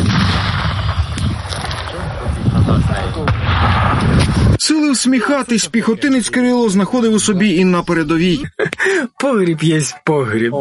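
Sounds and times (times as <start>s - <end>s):
gunshot: 0.0s - 2.3s, 2.9s - 4.6s
speech: 4.9s - 10.5s.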